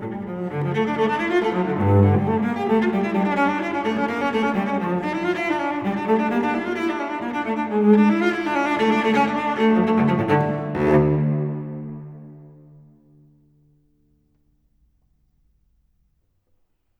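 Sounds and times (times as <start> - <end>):
solo cello playing a courante in D minor: 0.0 - 13.2.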